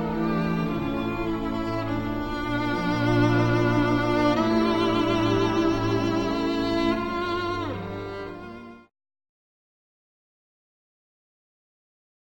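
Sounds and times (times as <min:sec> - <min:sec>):
violin: 0:00.0 - 0:08.9.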